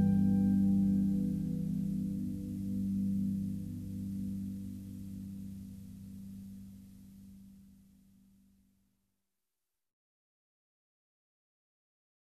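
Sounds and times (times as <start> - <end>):
harps: 0.0 - 5.4.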